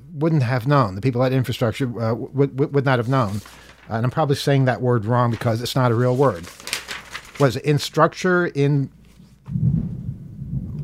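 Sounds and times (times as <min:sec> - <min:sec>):
speech: 0:00.2 - 0:06.7, 0:07.4 - 0:09.9
thunder rumbling: 0:09.6 - 0:10.8.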